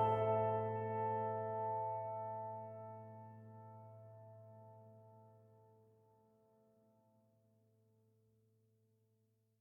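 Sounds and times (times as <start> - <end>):
emotional music: 0.0 - 4.8.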